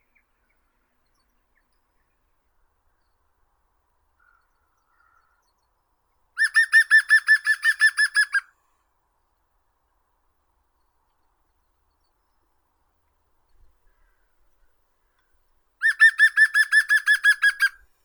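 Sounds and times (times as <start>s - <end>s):
green woodpecker Picus viridis: 6.4s - 8.4s, 15.8s - 17.8s.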